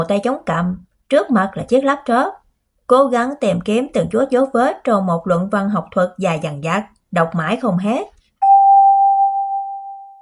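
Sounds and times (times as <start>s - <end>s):
speech: 0.0s - 8.1s
elevator arrival chime: 8.4s - 10.2s.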